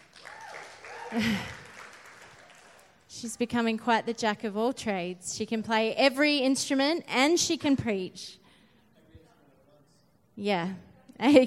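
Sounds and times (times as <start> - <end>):
audience applause: 0.0 - 3.0
speech: 1.1 - 1.6, 3.2 - 8.4, 10.4 - 11.4.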